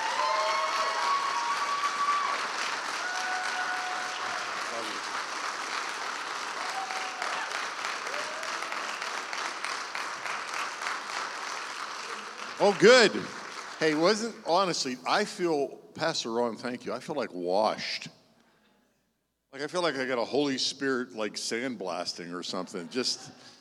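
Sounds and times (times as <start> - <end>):
church congregation applause welcoming a pastor: 0.0 - 15.0
speech: 12.6 - 18.2, 19.6 - 23.5.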